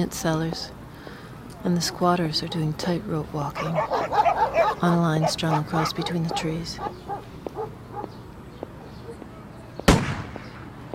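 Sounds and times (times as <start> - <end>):
speech: 0.0 - 0.8, 1.6 - 8.2
low murmur: 0.0 - 10.9
gunshot: 9.9 - 10.6.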